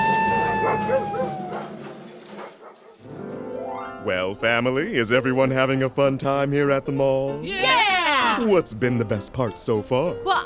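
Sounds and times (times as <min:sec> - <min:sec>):
dogs' high sliding yelps: 0:00.0 - 0:01.8
dogs barking and whining: 0:00.0 - 0:03.0
speech: 0:04.0 - 0:07.8, 0:08.4 - 0:10.4.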